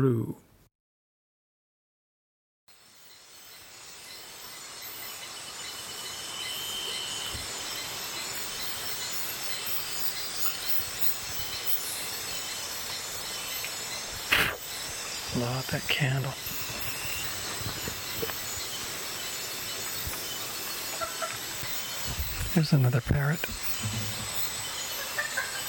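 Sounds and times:
rainforest ambience at a river tributary upriver from Curimana, Peru: 2.7s - 25.6s
rainforest insects: 2.7s - 25.6s
speech: 15.4s - 16.7s, 22.6s - 24.1s.

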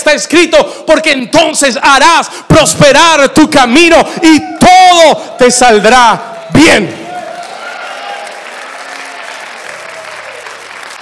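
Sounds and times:
speech: 0.1s - 7.0s
audience applause: 6.2s - 11.0s.

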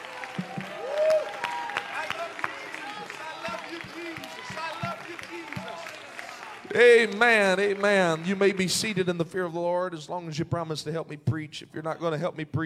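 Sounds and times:
audience clapping: 0.0s - 9.5s
speech: 0.4s - 0.7s, 6.8s - 12.6s.

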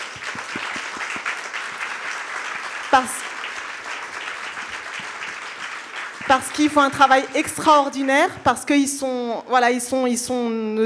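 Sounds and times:
audience applause: 0.0s - 8.2s
speech: 3.0s - 3.2s, 6.3s - 10.8s.

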